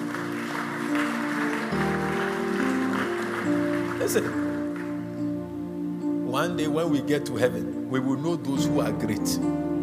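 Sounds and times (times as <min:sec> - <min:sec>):
audience clapping: 0:00.0 - 0:05.4
speech: 0:04.1 - 0:04.5, 0:06.4 - 0:09.7.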